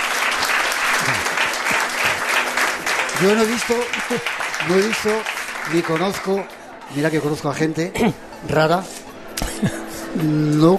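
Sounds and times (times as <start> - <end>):
audience applause: 0.0 - 6.8
speech: 3.2 - 9.0, 9.6 - 10.7.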